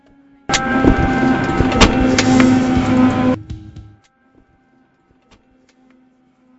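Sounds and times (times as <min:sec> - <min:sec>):
helicopter: 0:00.5 - 0:03.4.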